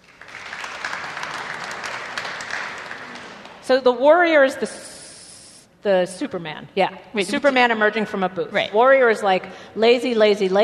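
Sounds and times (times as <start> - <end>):
audience clapping: 0.0 - 3.7
speech: 3.7 - 4.9, 5.8 - 10.6.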